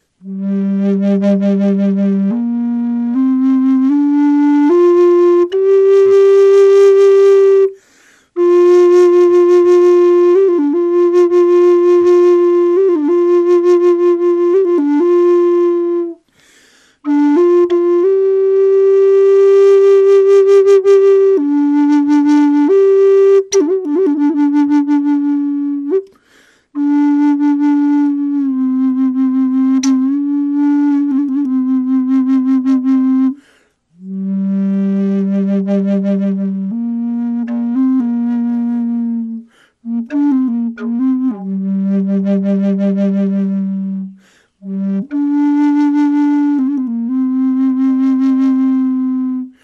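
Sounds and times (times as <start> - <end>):
natural wood flute: 0.0 - 49.6.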